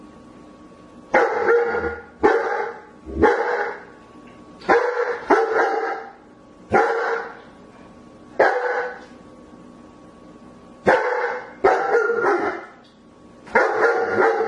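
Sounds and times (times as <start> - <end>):
faint steady hum: 0.0 - 14.4
German Shepherd barking: 1.1 - 3.9, 4.6 - 7.4, 8.4 - 9.0, 10.8 - 12.8, 13.5 - 14.4.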